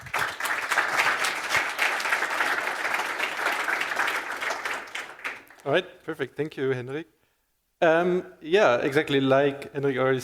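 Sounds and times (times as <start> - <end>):
audience applause: 0.0 - 5.7
speech: 5.6 - 7.2, 7.8 - 10.2.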